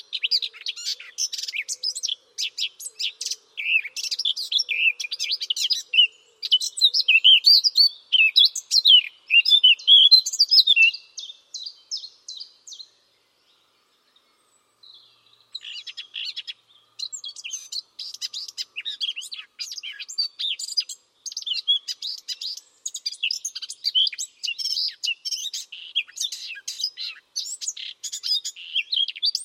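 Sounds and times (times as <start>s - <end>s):
bird chirping: 0.0s - 29.4s.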